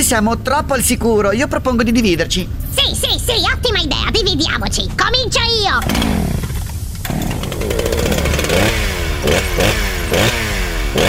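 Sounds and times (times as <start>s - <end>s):
speech: 0.0s - 6.5s
chainsaw revving: 5.8s - 11.0s.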